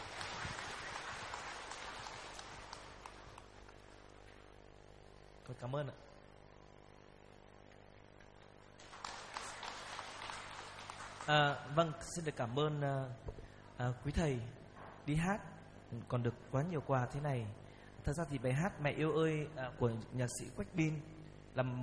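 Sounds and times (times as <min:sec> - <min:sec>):
audience applause: 0:00.0 - 0:04.0, 0:08.8 - 0:11.8
speech: 0:05.5 - 0:06.2, 0:11.2 - 0:21.8.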